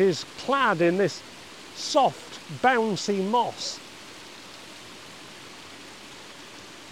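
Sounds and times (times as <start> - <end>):
speech: 0.0 - 3.8
water trickling over two small waterfalls into a pool: 0.0 - 6.9.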